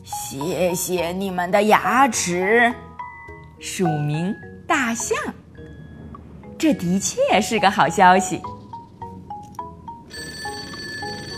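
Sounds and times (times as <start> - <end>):
speech: 0.3 - 2.9, 3.6 - 5.4, 6.6 - 8.6
telephone ringing: 9.7 - 11.3.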